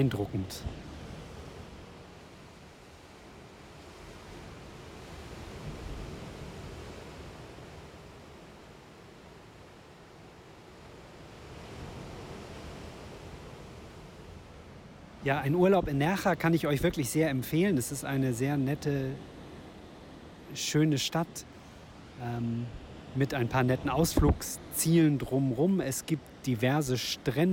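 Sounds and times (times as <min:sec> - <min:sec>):
speech: 0:00.0 - 0:00.9, 0:15.2 - 0:19.3, 0:20.5 - 0:21.5, 0:22.2 - 0:27.5
rough sea surf below rocky cliffs: 0:00.0 - 0:27.5.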